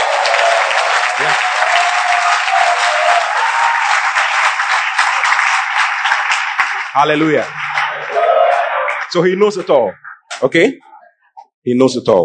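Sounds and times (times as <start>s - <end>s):
audience clapping: 0.0s - 10.6s
speech: 7.0s - 7.6s, 9.1s - 10.8s, 11.6s - 12.2s.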